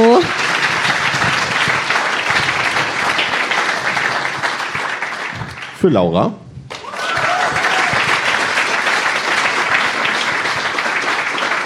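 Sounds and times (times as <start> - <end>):
crowd applause: 0.0 - 5.8, 6.7 - 11.6
speech: 5.8 - 6.4.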